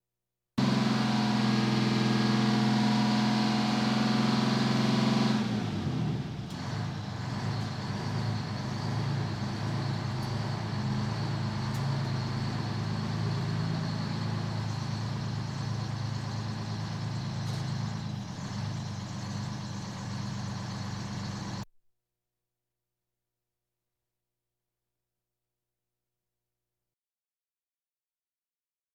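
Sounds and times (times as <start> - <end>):
fire engine sirens: 0.6 - 21.6.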